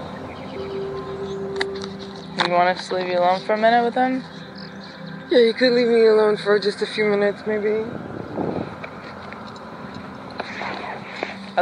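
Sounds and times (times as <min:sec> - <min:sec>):
birds singing outdoors: 0:00.0 - 0:11.6
speech: 0:02.4 - 0:04.4, 0:05.3 - 0:08.1.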